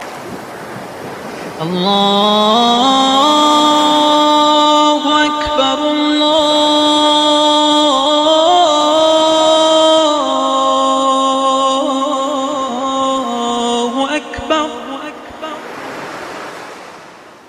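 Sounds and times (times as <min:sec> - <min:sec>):
call to prayer in Mashad: 0:01.6 - 0:16.1.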